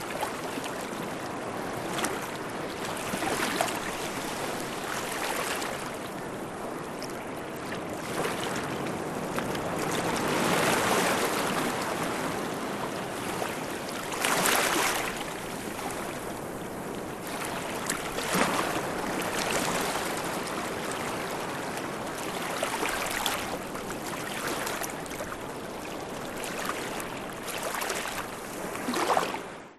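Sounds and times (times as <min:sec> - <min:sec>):
small waves in rock pools: 0:00.0 - 0:29.7.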